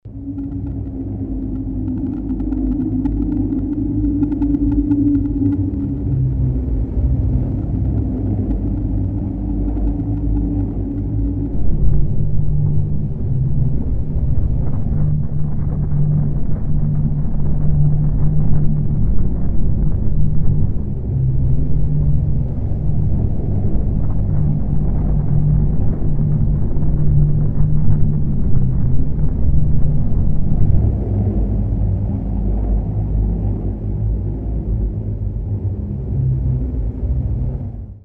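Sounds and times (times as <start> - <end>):
wind rumbling on the planet Mars: 0.0 - 38.0.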